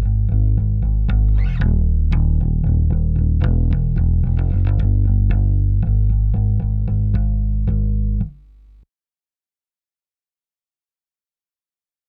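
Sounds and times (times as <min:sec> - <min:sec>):
bass: 0:00.0 - 0:08.8.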